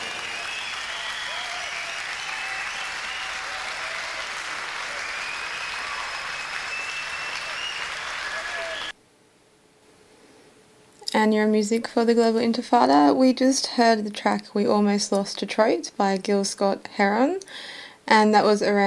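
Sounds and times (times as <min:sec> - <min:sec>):
audience applause welcoming band members at a live performance: 0:00.0 - 0:09.0
speech: 0:11.2 - 0:18.8.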